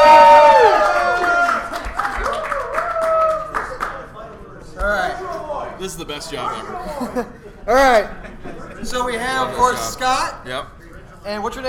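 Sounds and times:
crowd whooping and cheering: 0:00.0 - 0:03.8
audience applause: 0:00.0 - 0:04.2
speech: 0:06.2 - 0:08.2, 0:08.8 - 0:11.6
laughter: 0:06.7 - 0:09.8.

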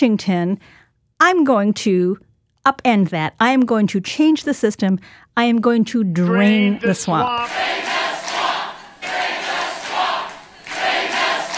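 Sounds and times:
speech: 0:00.0 - 0:08.4
rally crowd applauding and cheering: 0:07.2 - 0:11.5.

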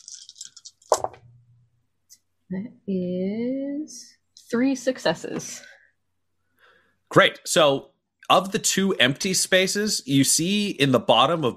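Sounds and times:
several small dice clattering: 0:00.0 - 0:01.2
speech: 0:02.5 - 0:05.7, 0:07.1 - 0:11.5.

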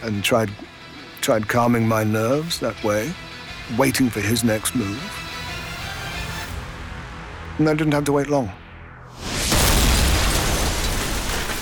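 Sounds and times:
speech: 0:00.0 - 0:05.2, 0:07.6 - 0:08.6
torpedo explosion hitting a ship: 0:08.8 - 0:11.5.

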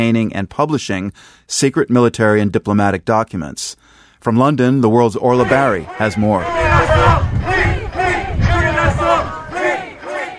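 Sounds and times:
speech: 0:00.0 - 0:07.8
protesters chanting outside a courthouse: 0:05.3 - 0:10.3.

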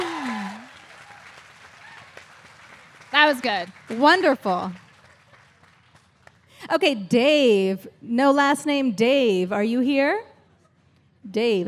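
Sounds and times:
person whooping: 0:00.0 - 0:01.2
crowd clapping: 0:00.0 - 0:06.6
speech: 0:03.2 - 0:04.8, 0:06.7 - 0:10.3, 0:11.3 - 0:11.6.

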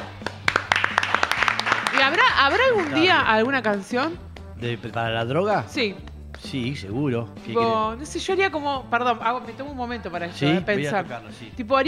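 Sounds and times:
audience applause: 0:00.0 - 0:03.2
speech: 0:02.2 - 0:11.8.

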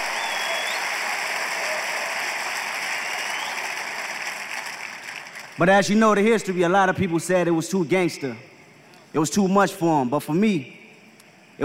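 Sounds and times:
brief high whistles: 0:00.0 - 0:03.9
audience at a hip-hop event applauding and cheering: 0:00.0 - 0:05.6
speech: 0:05.6 - 0:08.5, 0:09.1 - 0:10.8.

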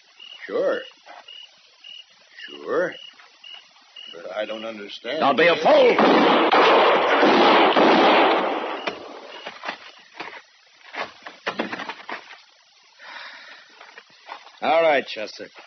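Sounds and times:
speech: 0:00.5 - 0:01.0, 0:02.5 - 0:03.1, 0:04.1 - 0:08.2, 0:14.6 - 0:15.6
gunshot blast in a dark room: 0:05.8 - 0:09.4.

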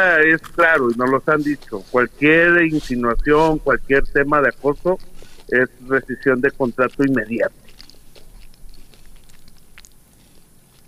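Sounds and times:
speech: 0:00.0 - 0:07.6
people chewing churros: 0:00.0 - 0:10.8.

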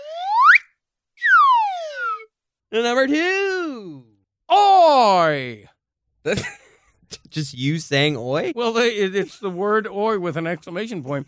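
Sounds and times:
up-down whistle: 0:00.0 - 0:02.3
speech: 0:02.7 - 0:06.6, 0:07.3 - 0:11.2.

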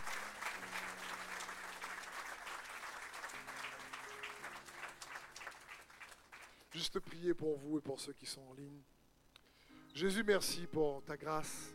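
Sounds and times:
church congregation applauding: 0:00.0 - 0:07.0
speech: 0:06.8 - 0:09.0, 0:10.0 - 0:11.7.

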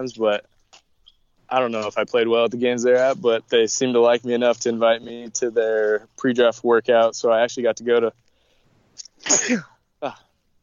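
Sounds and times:
speech: 0:00.0 - 0:00.5, 0:01.5 - 0:08.2, 0:09.2 - 0:10.2
person sneezing: 0:09.0 - 0:10.2.

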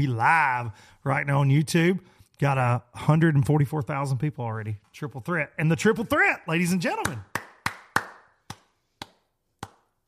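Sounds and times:
speech: 0:00.0 - 0:07.3
slow clap sound effect: 0:07.0 - 0:10.0.

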